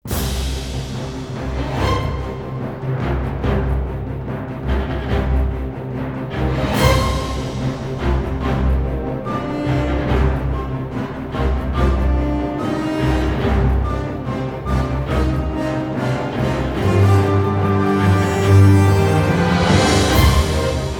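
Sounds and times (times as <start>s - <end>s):
orchestra playing: 0.0s - 20.9s.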